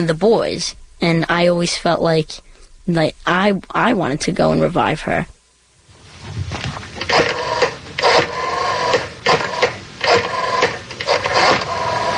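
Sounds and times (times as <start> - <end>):
speech: 0.0 - 5.3
rotary phone being dialed: 7.0 - 12.1.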